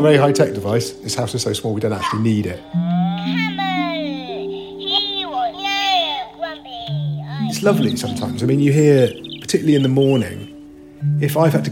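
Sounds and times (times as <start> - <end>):
speech: 0.0 - 3.5, 7.6 - 11.6
children chattering and squealing through a baby monitor: 1.9 - 9.6.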